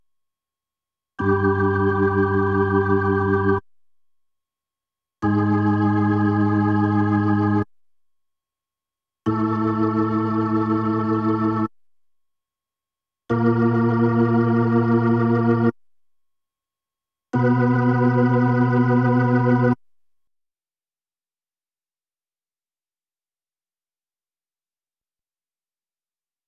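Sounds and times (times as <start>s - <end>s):
Hammond B3 organ: 1.2s - 3.6s, 5.2s - 7.6s, 9.3s - 11.7s, 13.3s - 15.7s, 17.4s - 19.8s.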